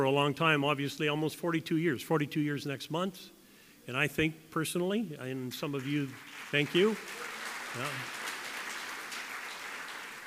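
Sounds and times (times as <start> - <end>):
speech: 0.0 - 8.2
small round of applause: 5.7 - 10.2.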